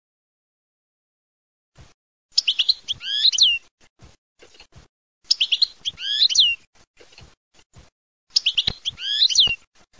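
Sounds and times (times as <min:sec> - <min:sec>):
European goldfinch singing: 0:02.4 - 0:03.6, 0:05.3 - 0:06.6, 0:08.3 - 0:09.6.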